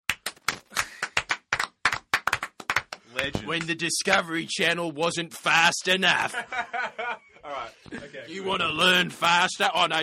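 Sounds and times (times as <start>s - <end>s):
small group applauding: 0.1s - 4.3s
speech: 3.2s - 10.0s
laughter: 6.2s - 8.7s.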